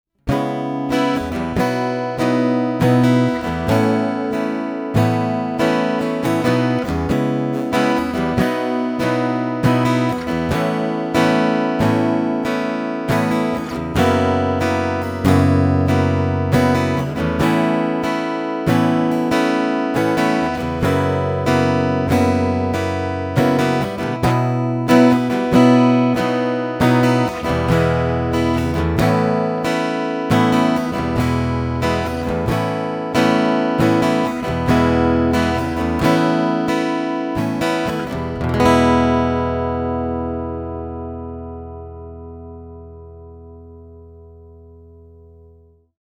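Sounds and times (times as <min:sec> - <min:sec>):
Ibanez AAM700CE NT acoustic guitar strumming through undersaddle pickup: 0:00.2 - 0:45.4.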